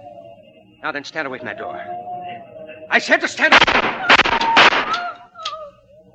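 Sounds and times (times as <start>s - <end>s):
speech: 0.8s - 2.1s, 2.9s - 3.8s
gunshot: 3.5s - 5.1s.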